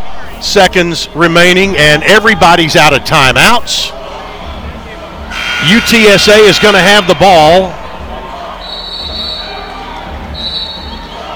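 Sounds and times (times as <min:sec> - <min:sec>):
speech: 0:00.4 - 0:04.0, 0:05.6 - 0:07.8
referee's whistle: 0:05.3 - 0:09.5, 0:10.4 - 0:11.0.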